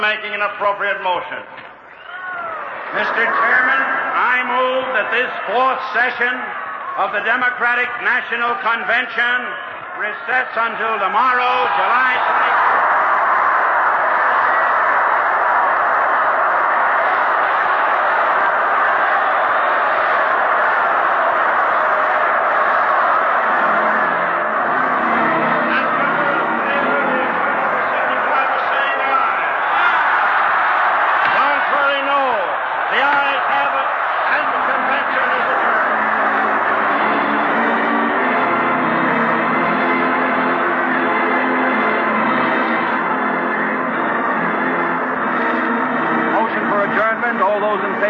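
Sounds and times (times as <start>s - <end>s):
speech: 0.0s - 1.6s, 2.9s - 12.8s
convention crowd roaring: 1.9s - 48.0s.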